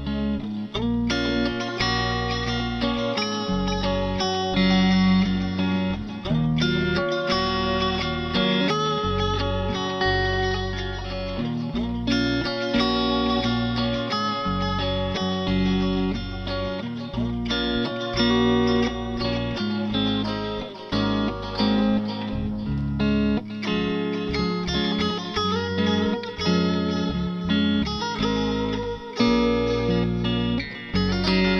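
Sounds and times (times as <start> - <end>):
Strat electric guitar: 0.0 - 31.5.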